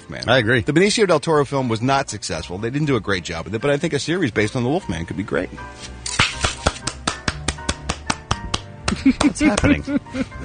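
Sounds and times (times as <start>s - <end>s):
speech: 0.1s - 6.2s, 9.0s - 10.4s
person clapping hands: 6.2s - 9.8s
laughter: 8.9s - 10.4s.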